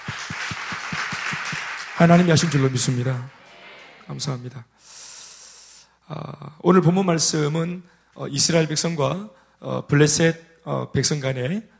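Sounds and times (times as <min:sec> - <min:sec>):
audience applauding: 0:00.0 - 0:04.4
speech: 0:02.0 - 0:03.4, 0:04.1 - 0:04.9, 0:06.1 - 0:11.7.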